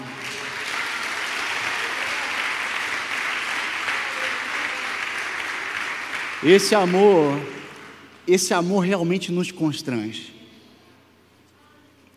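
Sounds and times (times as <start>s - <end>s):
audience applause: 0.0s - 8.2s
speech: 6.4s - 7.6s, 8.3s - 10.4s.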